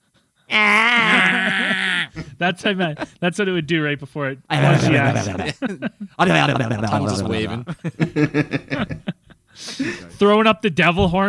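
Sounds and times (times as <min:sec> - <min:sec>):
speech: 0:00.5 - 0:00.8, 0:02.4 - 0:09.0, 0:09.6 - 0:11.2
person imitating goat scream: 0:00.5 - 0:02.2
laughter: 0:00.8 - 0:03.2, 0:04.5 - 0:10.2.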